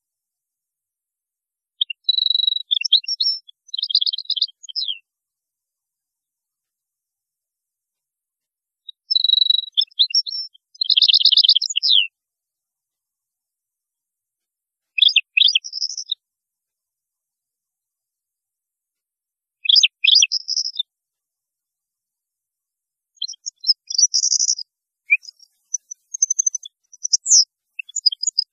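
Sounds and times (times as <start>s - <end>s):
European goldfinch twittering song: 1.8s - 5.0s, 9.0s - 12.1s, 15.0s - 16.2s, 19.6s - 20.8s, 23.2s - 28.5s.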